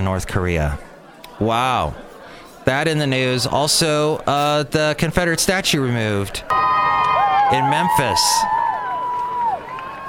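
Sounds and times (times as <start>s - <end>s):
speech: 0.0s - 2.0s, 2.6s - 6.7s, 7.5s - 8.6s
crowd cheering: 6.5s - 10.0s.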